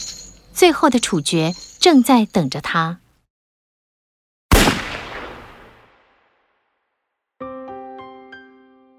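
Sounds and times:
speech: 0.6 - 3.0
gunshot echoing: 4.5 - 6.1.

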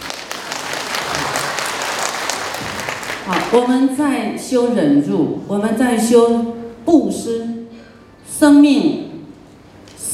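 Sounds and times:
audience clapping: 0.0 - 3.7
speech: 3.3 - 7.6, 8.4 - 9.0.

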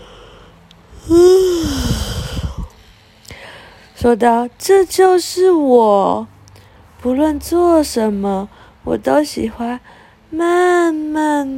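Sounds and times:
person acting out a yawn: 0.9 - 2.7
speech: 1.1 - 1.3, 4.0 - 6.3, 7.0 - 11.5.

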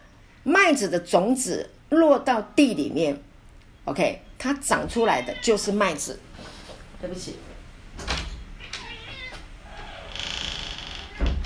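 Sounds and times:
speech: 0.4 - 3.3, 3.9 - 6.3, 7.0 - 7.5
domestic cat meowing: 4.9 - 6.0, 8.6 - 11.4.

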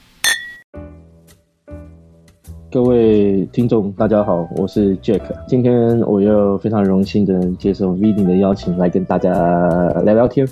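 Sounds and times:
glasses clinking in a toast: 0.2 - 0.6
speech: 2.7 - 10.5.

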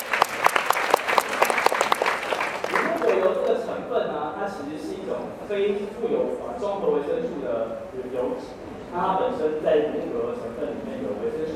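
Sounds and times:
audience applause: 0.0 - 3.6
speech: 4.5 - 11.5.

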